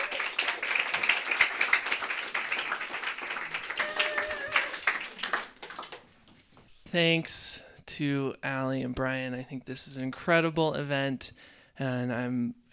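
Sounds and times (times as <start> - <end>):
audience applause: 0.0 - 6.0
speech: 6.9 - 12.7.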